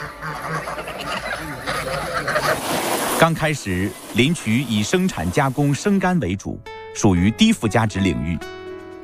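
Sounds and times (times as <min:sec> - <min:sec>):
Landes geese honking: 0:00.0 - 0:05.6
speech: 0:03.2 - 0:08.6.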